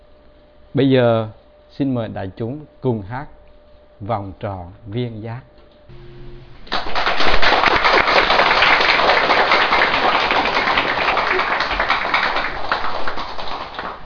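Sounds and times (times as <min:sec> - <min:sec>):
speech: 0:00.7 - 0:03.4, 0:04.0 - 0:06.5
group of people clapping hands: 0:06.6 - 0:14.0.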